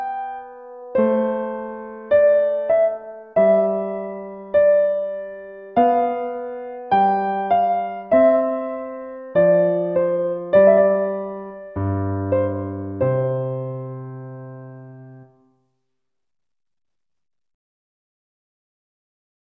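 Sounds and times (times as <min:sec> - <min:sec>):
gavotte on piano: 0:00.0 - 0:15.4.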